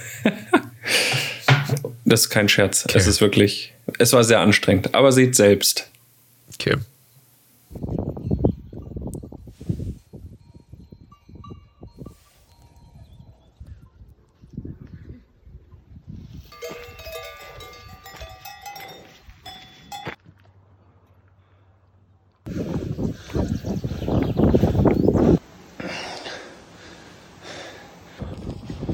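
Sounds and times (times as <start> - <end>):
laughter: 0.0 - 1.5
speech: 2.1 - 5.9, 6.6 - 6.9
heavy panting while climbing a mountain: 22.5 - 28.3.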